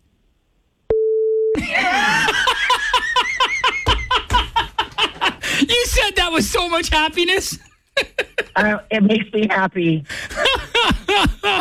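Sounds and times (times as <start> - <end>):
censor bleep over a curse word: 0.9 - 1.6
people laughing: 1.6 - 6.0, 7.4 - 8.8, 10.2 - 11.5
speech: 6.4 - 10.2.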